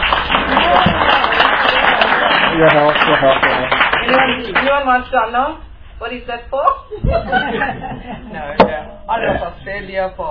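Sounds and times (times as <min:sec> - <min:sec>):
audience clapping at a Buddhist Society of WA evening event: 0:00.0 - 0:04.8
voices over applause: 0:00.0 - 0:04.8
speech: 0:02.6 - 0:10.3
laughter: 0:06.9 - 0:09.7.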